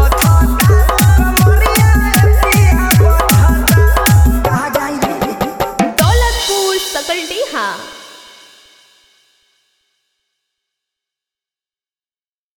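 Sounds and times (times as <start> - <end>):
Bhojpuri DJ song: 0.0 - 8.2.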